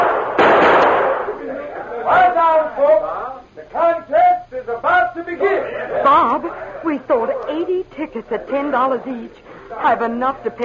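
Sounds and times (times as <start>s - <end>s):
gunshot fired into the air by a sheriff at a shooting contest: 0.0s - 1.4s
laughter: 1.3s - 2.7s, 5.3s - 10.6s
speech: 2.1s - 10.6s.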